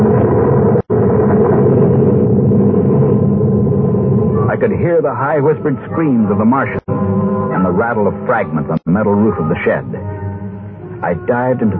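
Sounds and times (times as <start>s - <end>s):
explosion rumbling: 0.0s - 7.4s
speech: 4.6s - 7.0s, 7.6s - 10.0s, 11.0s - 11.7s.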